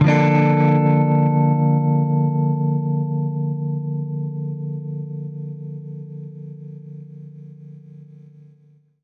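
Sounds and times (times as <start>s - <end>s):
baritone guitar chord: 0.0s - 3.5s.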